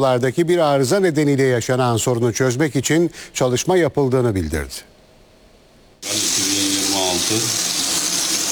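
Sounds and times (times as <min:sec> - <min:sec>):
speech: 0:00.0 - 0:04.9
muddy water gushing from a household tap in Istanbul's Anatolian side: 0:06.0 - 0:08.4.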